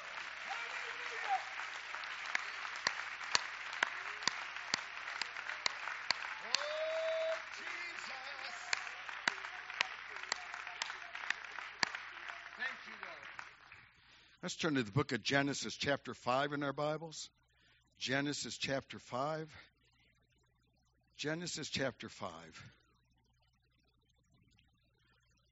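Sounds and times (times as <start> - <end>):
audience clapping hands: 0.0 - 14.3
speech: 14.4 - 17.4, 18.0 - 19.7, 21.2 - 22.8.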